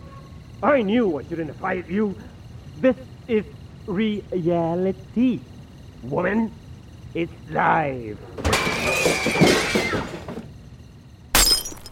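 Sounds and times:
speech: 0.6s - 10.2s
glass window breaking: 11.4s - 11.9s.

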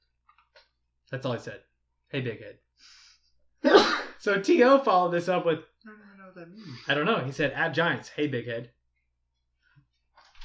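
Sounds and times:
speech: 1.1s - 3.0s, 3.7s - 8.8s
sneeze: 3.6s - 4.2s.

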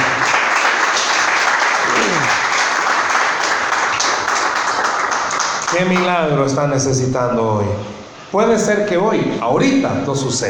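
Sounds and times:
audience applauding: 0.0s - 6.1s
speech: 5.8s - 10.4s.

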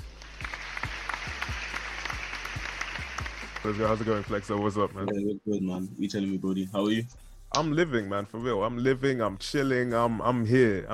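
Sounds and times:
applause welcoming a guest to a hip-hop interview show: 0.0s - 5.0s
speech: 3.6s - 10.9s.

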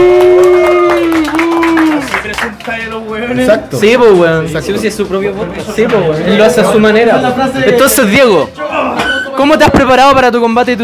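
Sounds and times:
person holding a long cheering note: 0.0s - 2.2s
people clapping: 0.0s - 3.6s
speech: 3.4s - 10.8s.

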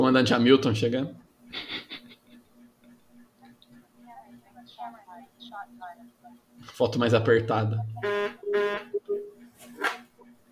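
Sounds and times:
speech: 0.1s - 1.7s, 4.8s - 10.0s
buzzer from a pressed button: 8.0s - 10.0s.

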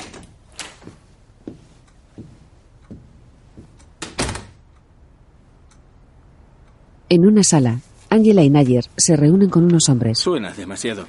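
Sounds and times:
soft knocks and clunks of a door opening: 0.0s - 4.6s
door banging shut: 4.0s - 4.6s
speech: 7.1s - 11.0s.

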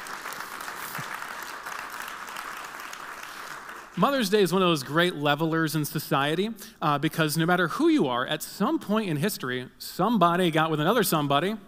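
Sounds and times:
audience applause: 0.0s - 4.2s
speech: 4.0s - 11.6s.

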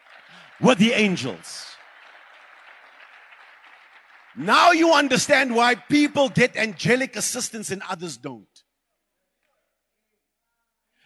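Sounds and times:
audience clapping hands: 0.0s - 8.0s
speech: 0.3s - 1.7s, 4.4s - 8.6s.

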